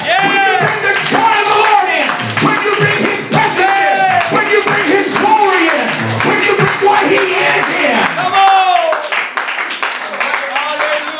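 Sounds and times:
audience clapping: 0.0 - 11.1.

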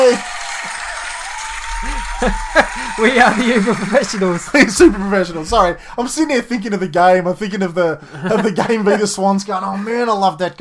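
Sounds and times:
round of applause: 0.0 - 5.8
laughter: 0.0 - 6.9, 8.1 - 9.1
voiced cheer: 0.0 - 7.3
speech: 1.8 - 10.6.

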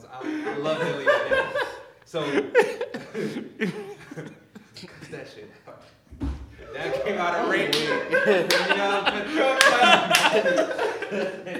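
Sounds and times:
people chattering: 0.0 - 3.4, 6.5 - 11.5
laughter: 0.0 - 5.7, 6.6 - 11.5
speech: 0.6 - 4.4, 5.1 - 6.0, 6.8 - 11.5
hand clap as audio edit marker: 7.5 - 10.7.

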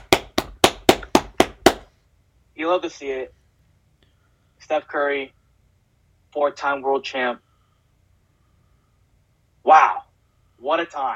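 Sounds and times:
sharp hand claps: 0.0 - 1.9
speech: 2.6 - 3.4, 4.6 - 5.4, 6.3 - 7.4, 10.6 - 11.1.

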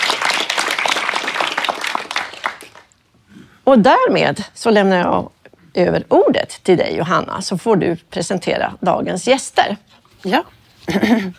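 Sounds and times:
applause: 0.0 - 3.0
speech: 3.7 - 11.3.

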